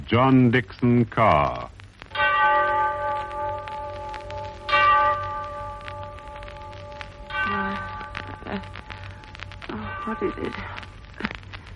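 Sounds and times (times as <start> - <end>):
speech: 0.1 - 1.8, 10.1 - 10.8
clock bell striking the hour: 2.2 - 8.6.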